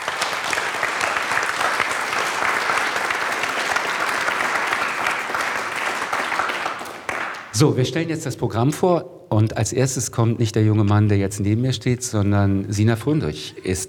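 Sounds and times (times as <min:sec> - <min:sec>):
audience applause: 0:00.0 - 0:07.6
speech: 0:07.6 - 0:13.8.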